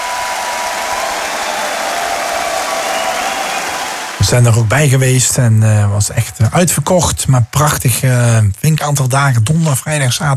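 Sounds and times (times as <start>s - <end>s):
enthusiastic concert audience applause: 0.0s - 6.0s
speech: 4.3s - 10.3s.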